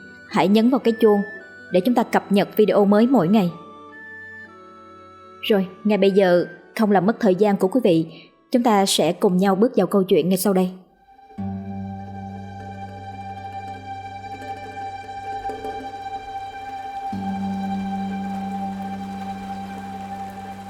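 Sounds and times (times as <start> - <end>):
speech: 0.3 - 3.6, 5.4 - 10.8
steady rain falling: 14.4 - 20.6.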